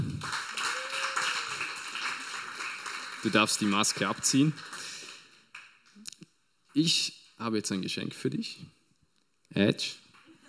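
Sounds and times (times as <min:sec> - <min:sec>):
audience applause: 0:00.0 - 0:05.5
speech: 0:03.2 - 0:04.8, 0:06.8 - 0:08.8, 0:09.5 - 0:10.0.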